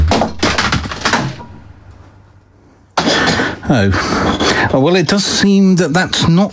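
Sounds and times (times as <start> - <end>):
CD shattering: 0.0 - 1.8
CDs thrown across room clattering: 0.0 - 2.1
speech: 3.7 - 6.5.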